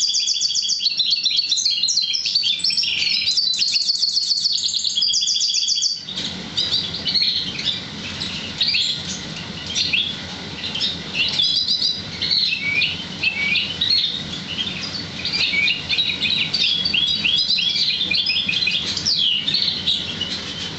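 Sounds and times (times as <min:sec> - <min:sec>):
Oriental magpie-robin song: 0:00.0 - 0:20.7.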